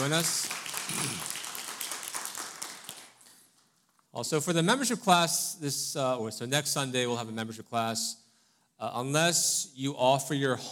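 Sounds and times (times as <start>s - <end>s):
speech: 0.0s - 1.4s, 4.2s - 8.2s, 8.8s - 10.6s
church congregation applauding to welcome a first-time visitor: 0.0s - 3.7s.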